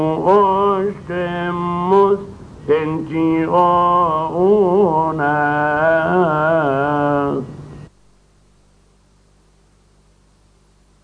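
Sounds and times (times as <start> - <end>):
gospel response singing: 0.0 - 7.6.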